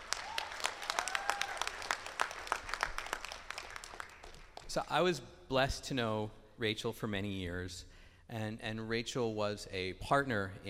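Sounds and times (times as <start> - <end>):
audience clapping: 0.0 - 5.0
speech: 4.7 - 10.6.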